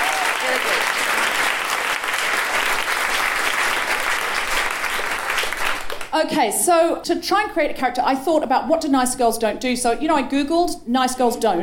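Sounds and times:
crowd applauding: 0:00.0 - 0:06.2
speech: 0:06.2 - 0:11.6.

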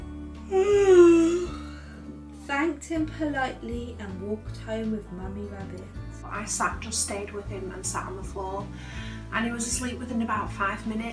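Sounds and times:
speech: 0:00.5 - 0:01.0, 0:02.6 - 0:11.1
long voiced yawn: 0:00.5 - 0:01.8.

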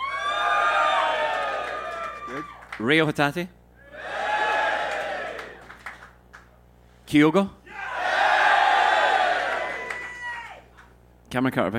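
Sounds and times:
live audience cheering: 0:00.0 - 0:02.8, 0:03.8 - 0:06.1, 0:07.7 - 0:10.7
speech: 0:02.8 - 0:03.6, 0:07.1 - 0:07.6, 0:11.3 - 0:11.7.

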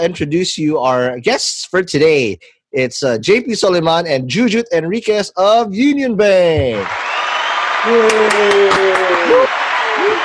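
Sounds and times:
speech: 0:00.0 - 0:07.2, 0:07.8 - 0:09.4
audience applause: 0:06.7 - 0:10.2
crowd cheering: 0:06.7 - 0:10.2.

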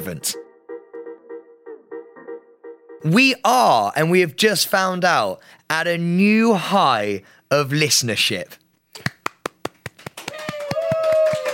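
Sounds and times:
speech: 0:00.0 - 0:00.5, 0:03.0 - 0:09.1
muted hand clap: 0:09.0 - 0:11.5.

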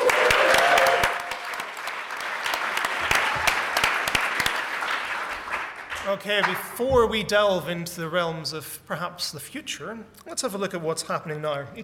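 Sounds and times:
audience at the Science Museum clapping: 0:00.0 - 0:06.8
speech: 0:06.1 - 0:11.8.

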